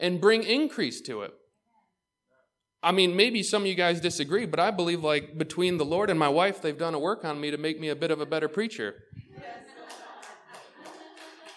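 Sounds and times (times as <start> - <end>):
speech: 0.0 - 1.4, 2.8 - 9.7
laughter: 7.7 - 11.5
audience clapping: 9.7 - 11.5.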